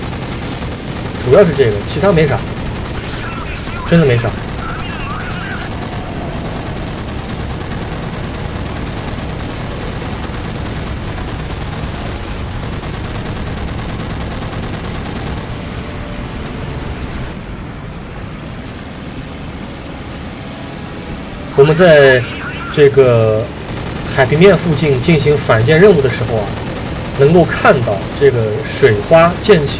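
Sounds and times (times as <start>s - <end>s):
enemy machine-gun fire in the video game Battlestations Midway: 0.0s - 15.8s, 23.7s - 29.7s
speech: 1.2s - 2.5s, 3.9s - 4.4s, 21.6s - 23.6s, 24.2s - 26.6s, 27.2s - 29.7s.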